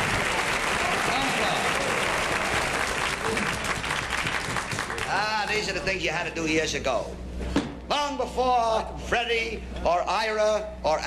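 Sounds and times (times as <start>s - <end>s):
large audience applause: 0.0s - 5.4s
speech: 5.5s - 11.0s.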